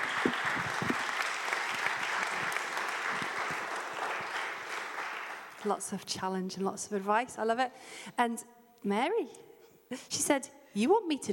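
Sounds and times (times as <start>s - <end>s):
audience clapping: 0.0s - 5.8s
speech: 5.6s - 11.3s.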